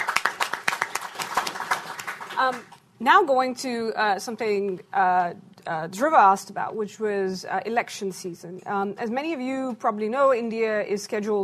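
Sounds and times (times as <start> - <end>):
audience applause: 0.0 - 2.6
speech: 2.4 - 11.4.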